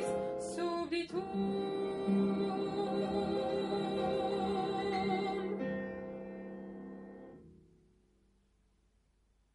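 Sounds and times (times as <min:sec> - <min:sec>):
alto voice part of a sacred choral work: 0:00.0 - 0:06.8.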